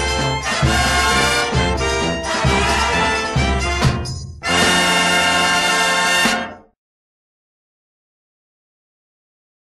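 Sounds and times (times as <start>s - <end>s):
frevo music: 0.0s - 6.7s.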